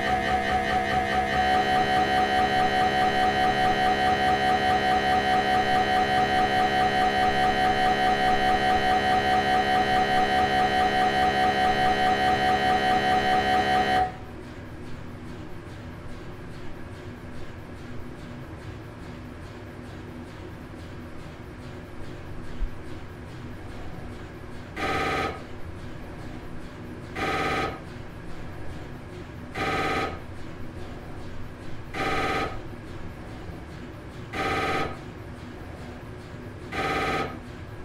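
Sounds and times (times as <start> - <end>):
MRI tomography scanner: 0.0 - 37.8.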